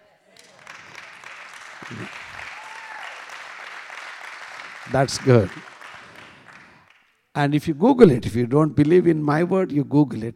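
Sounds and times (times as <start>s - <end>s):
crowd clapping: 0.3s - 7.3s
speech: 1.8s - 2.3s, 4.9s - 5.7s, 7.4s - 10.3s.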